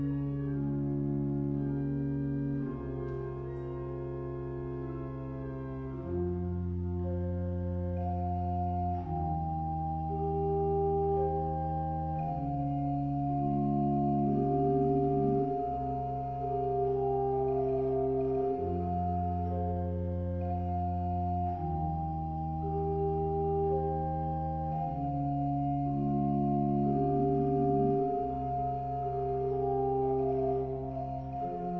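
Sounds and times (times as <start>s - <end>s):
Russian and German organ music: 0.0s - 31.7s.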